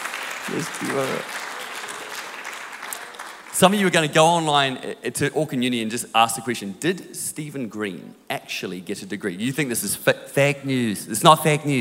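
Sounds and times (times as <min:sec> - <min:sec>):
audience applause: 0:00.0 - 0:04.1
speech: 0:00.5 - 0:01.4, 0:03.6 - 0:11.7.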